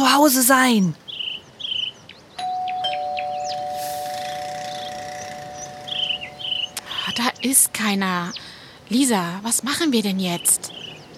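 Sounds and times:
speech: 0.1s - 1.0s, 7.1s - 10.8s
doorbell ringing: 2.4s - 6.8s.

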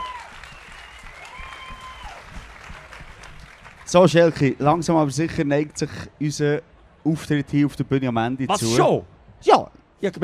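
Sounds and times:
audience applause: 0.0s - 4.4s
speech: 3.9s - 10.2s.

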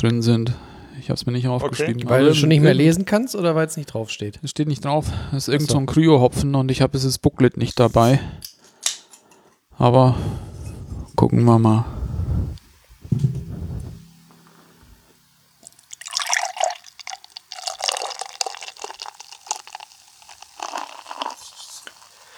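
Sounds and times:
speech: 0.0s - 8.5s, 9.8s - 10.4s, 11.2s - 12.0s
beer being poured into a glass: 15.4s - 22.3s.

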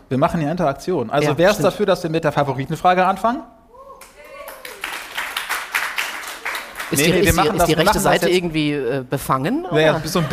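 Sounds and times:
speech: 0.1s - 3.6s, 6.9s - 10.3s
audience clapping: 4.0s - 8.2s.

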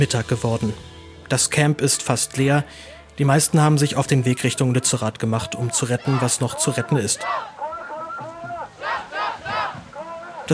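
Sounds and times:
speech: 0.0s - 7.6s
protest crowd chanting slogans near Lützerath: 6.0s - 10.5s.

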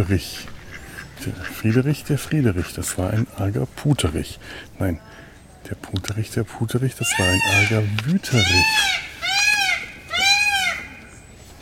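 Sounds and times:
speech: 0.0s - 0.5s, 1.2s - 9.1s
peacock screaming: 7.0s - 11.1s.

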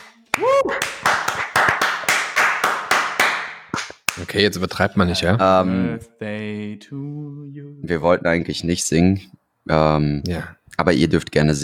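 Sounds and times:
applause: 0.0s - 4.2s
speech: 4.3s - 11.6s.

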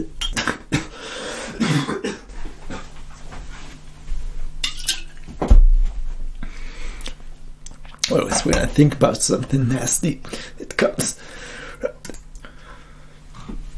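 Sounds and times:
low noise: 0.0s - 13.7s
person coughing: 0.4s - 2.8s
speech: 8.2s - 11.1s.

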